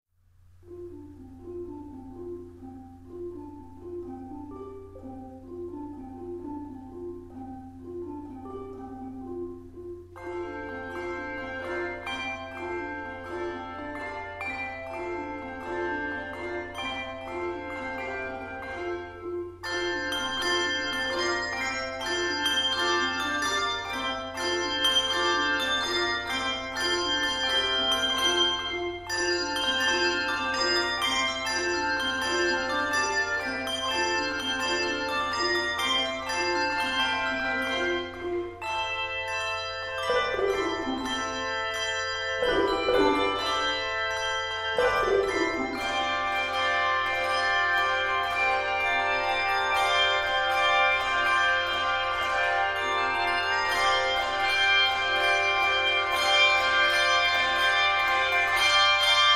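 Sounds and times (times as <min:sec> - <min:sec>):
handbells: 0:10.2 - 0:59.3.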